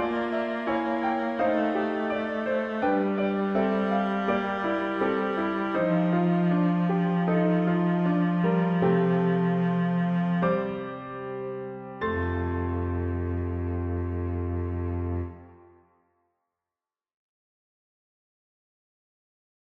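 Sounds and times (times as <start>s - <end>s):
cello chorale: 0.0s - 15.8s.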